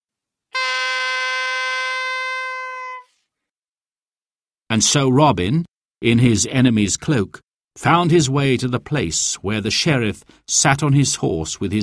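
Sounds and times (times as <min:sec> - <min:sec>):
long horn blast as a signal: 0:00.5 - 0:03.1
speech: 0:04.7 - 0:11.8.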